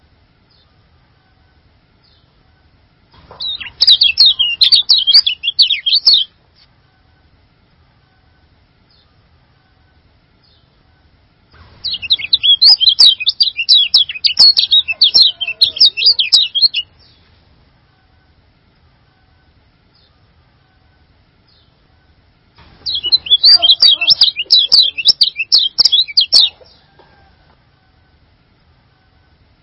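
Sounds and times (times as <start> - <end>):
bird twittering: 3.3 - 6.3, 11.8 - 17.1, 22.8 - 26.8.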